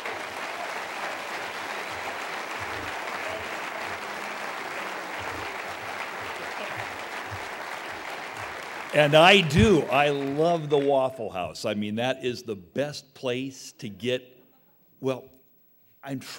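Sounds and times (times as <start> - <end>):
Southern crowd applause welcoming a speaker: 0.0 - 11.3
speech: 9.0 - 14.3, 15.0 - 15.4, 16.0 - 16.3.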